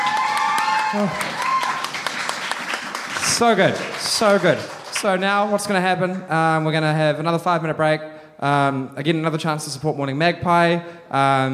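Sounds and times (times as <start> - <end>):
voices calling out and cheering: 0.0 - 2.2
audience clapping: 0.0 - 5.9
speech: 0.9 - 1.4, 3.4 - 11.5.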